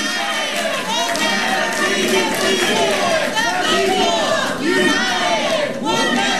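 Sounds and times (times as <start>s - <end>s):
crowd chanting in a government center: 0.0s - 6.3s.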